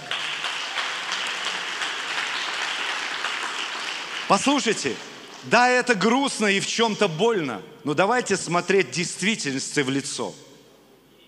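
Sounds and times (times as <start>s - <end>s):
audience applause: 0.0s - 5.5s
speech: 4.3s - 10.5s.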